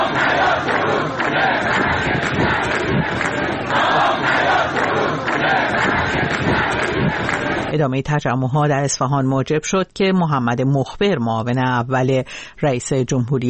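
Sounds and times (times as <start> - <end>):
thousands of protesters chanting slogans in the dry Zayandeh Rud riverbed: 0.0 - 7.7
speech: 7.8 - 13.4.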